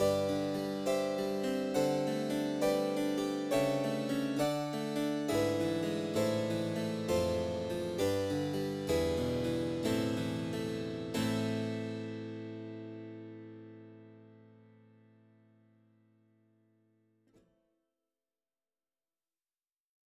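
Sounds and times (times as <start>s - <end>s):
harpsichord concerto: 0.0s - 12.2s.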